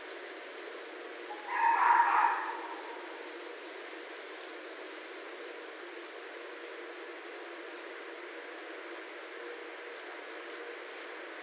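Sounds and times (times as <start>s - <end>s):
background hiss: 0.0s - 11.4s
red fox calling: 1.3s - 3.2s.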